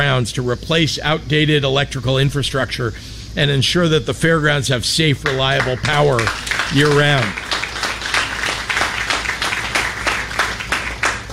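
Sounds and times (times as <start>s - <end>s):
speech: 0.0s - 7.5s
audience applause: 5.2s - 11.3s.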